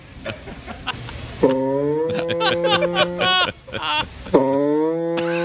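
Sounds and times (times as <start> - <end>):
laughter: 0.3 - 4.3, 5.2 - 5.4
voice imitating a vehicle's farting noise: 4.3 - 5.4.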